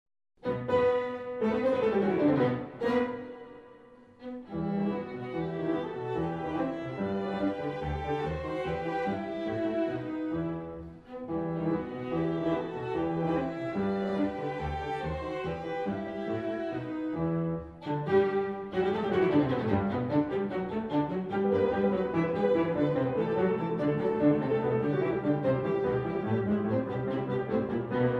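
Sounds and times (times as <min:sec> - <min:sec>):
piano trio: 0:00.4 - 0:28.1.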